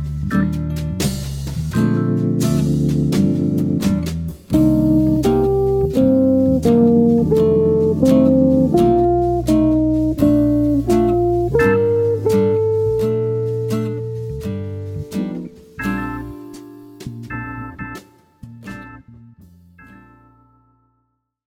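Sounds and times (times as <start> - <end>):
jazz guitar arpeggios over a ii V I progression in a major key: 0.0 - 20.5.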